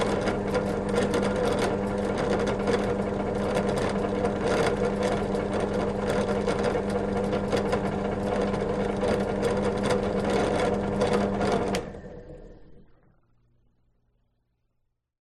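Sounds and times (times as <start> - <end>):
old belt grinder running: 0.0 - 11.9.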